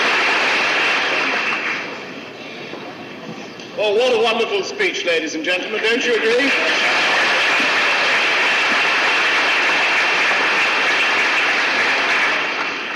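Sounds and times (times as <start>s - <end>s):
audience applause: 0.0s - 2.2s, 6.3s - 12.9s
speech: 3.8s - 7.1s.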